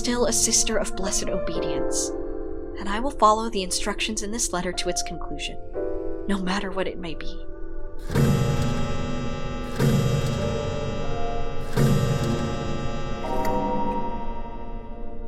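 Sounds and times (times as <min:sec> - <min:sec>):
speech: 0:00.0 - 0:02.2, 0:02.8 - 0:05.7, 0:06.3 - 0:08.4
clock chiming the half hour: 0:08.0 - 0:15.2.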